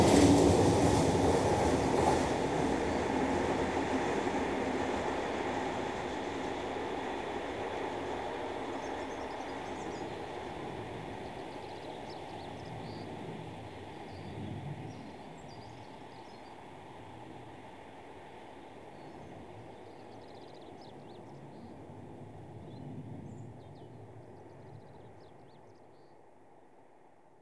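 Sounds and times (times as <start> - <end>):
heavy diesel trains passing: 0.0 - 14.1.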